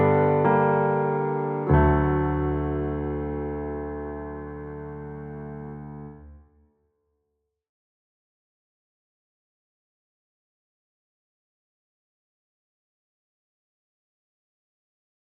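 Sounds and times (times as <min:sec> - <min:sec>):
piano instrumental: 0:00.0 - 0:06.4.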